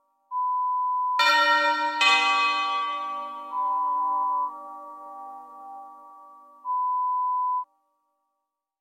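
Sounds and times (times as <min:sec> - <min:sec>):
lo-fi ding-dong chimes: 0:01.2 - 0:07.4.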